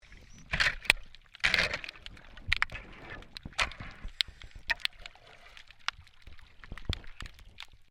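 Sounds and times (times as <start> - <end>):
shovel scraping underwater during maintenance work: 0.0 - 7.7.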